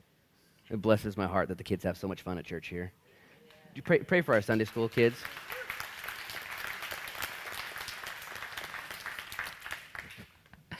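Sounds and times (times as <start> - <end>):
speech: 0.7 - 3.0, 3.8 - 5.6
audience clapping: 4.1 - 10.4.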